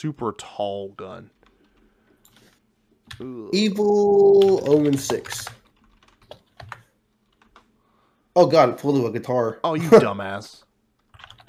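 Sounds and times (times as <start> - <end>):
speech: 0.0 - 1.4, 3.2 - 5.6, 8.4 - 10.6
computer keyboard typing: 1.3 - 3.3, 3.9 - 7.7, 11.0 - 11.4.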